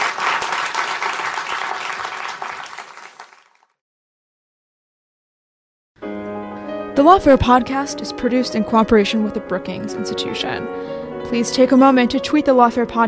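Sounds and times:
audience applause: 0.0s - 3.8s
speech: 7.0s - 13.0s.

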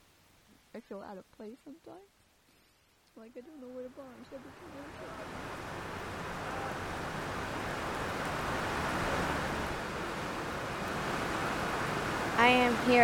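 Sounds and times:
rain: 0.0s - 13.0s
speech: 0.8s - 2.2s, 3.2s - 7.8s, 12.4s - 13.0s.

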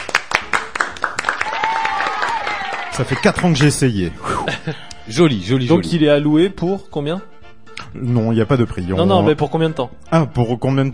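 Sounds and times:
small group clapping: 0.0s - 4.0s
person cheering: 1.4s - 3.3s
speech: 3.0s - 7.3s, 7.9s - 10.9s
laughter: 4.1s - 5.1s.

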